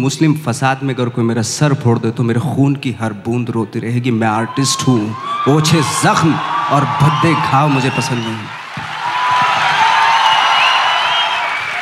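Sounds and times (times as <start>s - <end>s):
speech: 0.0s - 8.9s
loud audience applause: 5.1s - 11.8s.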